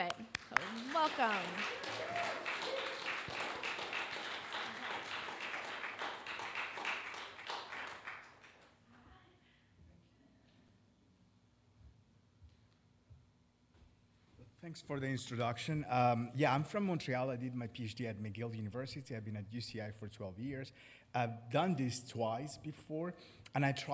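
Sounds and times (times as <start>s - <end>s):
audience applause: 0.0s - 8.7s
speech: 1.0s - 2.2s, 14.7s - 23.9s.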